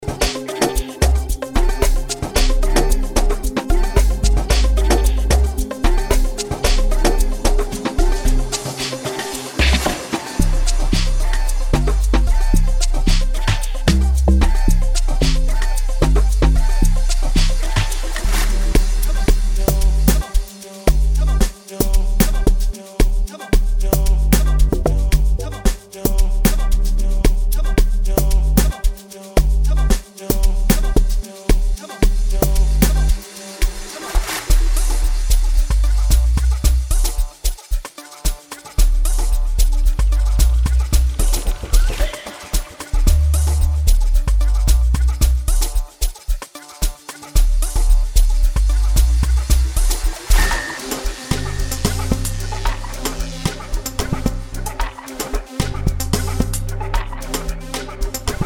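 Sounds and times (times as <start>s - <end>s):
kasi amapiano beat: 0.0s - 58.4s.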